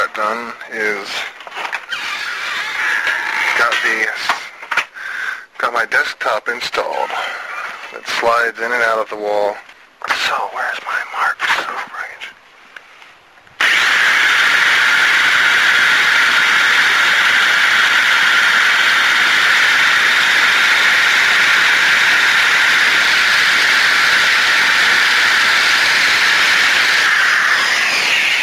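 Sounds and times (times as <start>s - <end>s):
speech: 0.2s - 1.3s, 6.0s - 9.7s, 10.3s - 11.9s
power drill drilling through metal: 1.7s - 4.1s, 13.6s - 28.4s.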